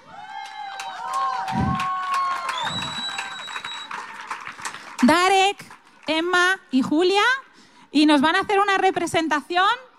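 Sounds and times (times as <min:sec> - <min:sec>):
audience applause: 0:00.1 - 0:06.1
speech: 0:05.1 - 0:09.8.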